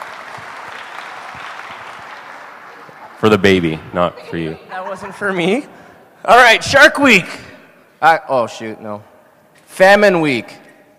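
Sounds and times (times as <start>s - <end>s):
audience clapping: 0.0s - 3.9s
speech: 3.2s - 7.4s, 8.0s - 9.1s, 9.8s - 10.6s.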